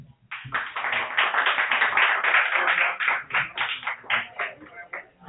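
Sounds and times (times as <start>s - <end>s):
audience applause for an opening act at a live show: 0.3s - 5.2s.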